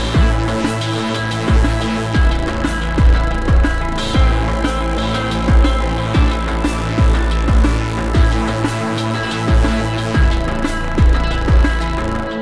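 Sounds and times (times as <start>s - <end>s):
guitar multiphonics: 0.0s - 12.4s.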